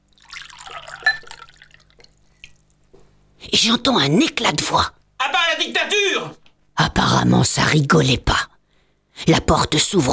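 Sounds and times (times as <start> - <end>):
water poured from carafe into glass: 0.0 - 2.7
speech: 3.5 - 5.0, 5.6 - 8.5, 9.2 - 10.1.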